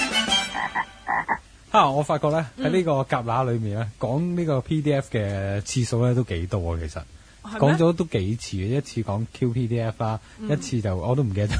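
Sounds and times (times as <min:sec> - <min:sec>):
edible frog croaking: 0:00.5 - 0:01.5
speech: 0:01.7 - 0:11.5.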